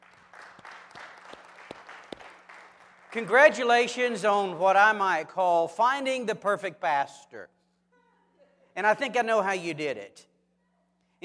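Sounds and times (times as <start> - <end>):
church congregation applauding: 0.0 - 4.0
speech: 3.1 - 7.6, 8.8 - 10.3.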